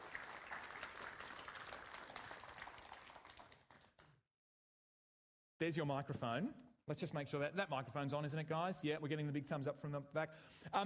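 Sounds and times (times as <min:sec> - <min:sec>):
audience applause: 0:00.0 - 0:04.1
speech: 0:05.6 - 0:10.8.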